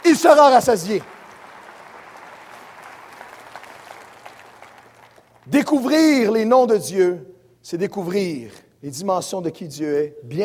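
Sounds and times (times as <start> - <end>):
audience applauding: 0.0 - 5.5
speech: 0.1 - 1.2, 5.5 - 10.4.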